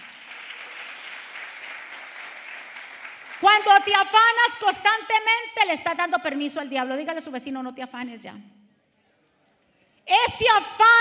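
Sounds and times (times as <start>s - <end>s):
audience applause: 0.0s - 3.4s
speech: 3.4s - 8.6s, 10.1s - 10.9s.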